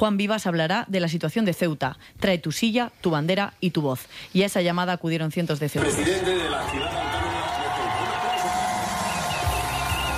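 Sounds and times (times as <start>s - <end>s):
speech: 0.0s - 7.2s
crowd cheering the start of an Antena 3 interview: 5.8s - 10.1s.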